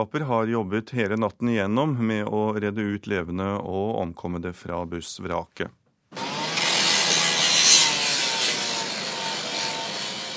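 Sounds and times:
speech: 0.0 - 5.8
circular saw cutting through a bus wall: 6.2 - 10.3.

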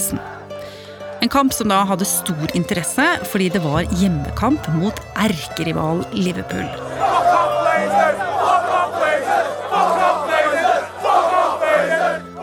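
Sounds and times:
speech: 0.1 - 0.3, 1.2 - 7.3
low steady drone: 3.8 - 7.2
angry football fans chanting outside a stadium: 3.8 - 12.4.

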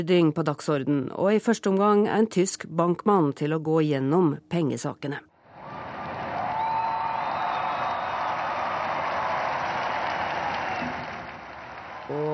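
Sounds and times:
speech: 0.0 - 5.3
large crowd cheering and applauding: 5.5 - 12.3
whistles and whoops: 5.6 - 12.1.

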